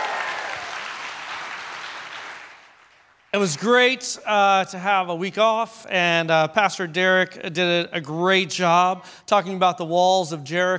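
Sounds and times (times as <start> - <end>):
audience applause: 0.0 - 3.6
speech: 3.3 - 10.7.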